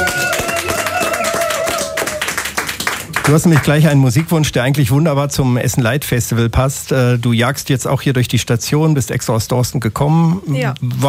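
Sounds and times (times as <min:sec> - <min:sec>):
audience applause: 0:00.0 - 0:04.3
speech: 0:03.3 - 0:11.0.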